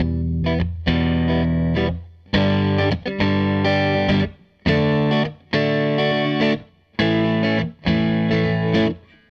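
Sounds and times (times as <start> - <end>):
Gretsch guitar loop: 0.0 - 9.3.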